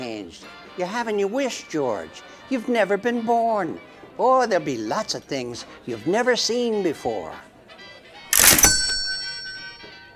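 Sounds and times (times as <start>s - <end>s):
speech: 0.0s - 7.5s
cash register bell ringing: 8.3s - 10.1s.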